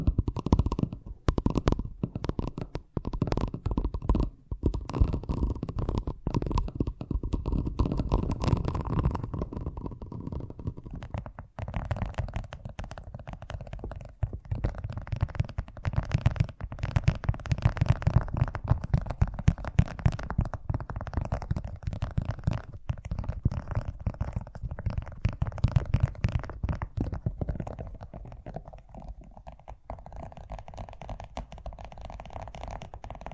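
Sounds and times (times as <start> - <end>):
fast tapping: 0.0 - 33.3.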